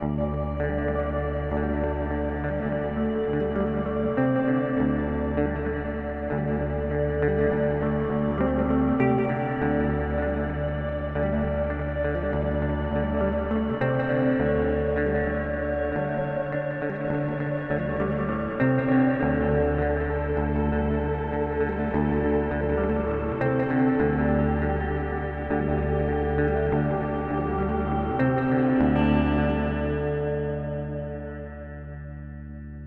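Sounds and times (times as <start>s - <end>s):
TC Electronic Hall of Fame 2 lo-fi sound: 0.0s - 32.8s.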